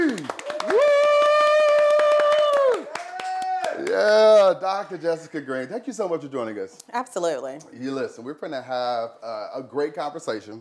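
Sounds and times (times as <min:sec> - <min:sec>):
audience clapping: 0:00.0 - 0:05.2
speech: 0:04.0 - 0:10.6.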